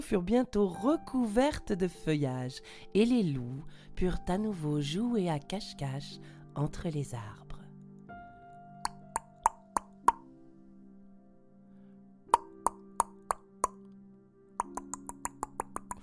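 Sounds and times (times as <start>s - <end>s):
speech: 0.0s - 7.4s
woodpecker pecking on a tree: 8.9s - 10.2s, 14.6s - 16.0s.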